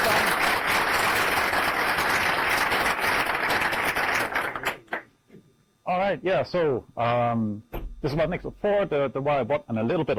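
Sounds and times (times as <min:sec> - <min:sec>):
audience applause for the speaker: 0:00.0 - 0:04.9
speech: 0:06.1 - 0:10.1.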